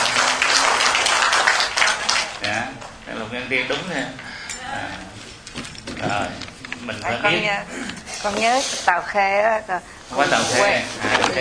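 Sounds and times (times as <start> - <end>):
applause from listeners at a Buddhist teaching session: 0.0 - 2.5
speech: 2.6 - 11.4.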